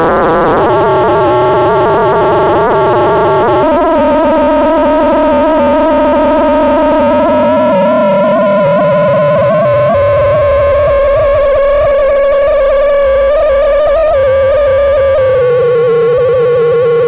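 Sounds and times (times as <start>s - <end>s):
Acidbox II noisebox: 0.0s - 17.0s.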